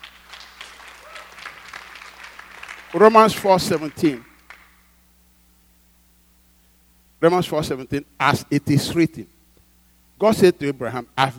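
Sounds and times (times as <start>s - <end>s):
audience clapping: 0.0s - 4.9s
speech: 2.9s - 4.3s, 7.2s - 9.3s, 10.2s - 11.3s.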